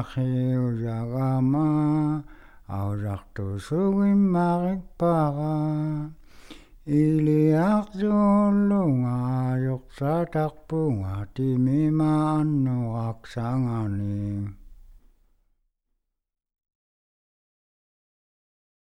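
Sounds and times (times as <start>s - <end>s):
Inuit person singing a song: 0.0s - 14.6s.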